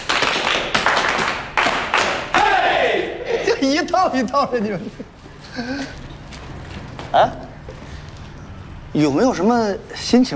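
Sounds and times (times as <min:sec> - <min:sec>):
clapping: 0:00.0 - 0:02.6
laughter: 0:02.9 - 0:06.6
speech: 0:03.6 - 0:06.0, 0:07.1 - 0:07.4, 0:08.9 - 0:10.3.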